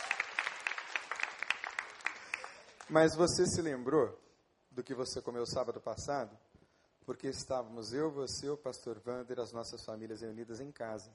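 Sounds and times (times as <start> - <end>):
audience applause: 0.0 - 2.9
speech: 2.9 - 4.2, 4.8 - 6.5, 7.1 - 11.1.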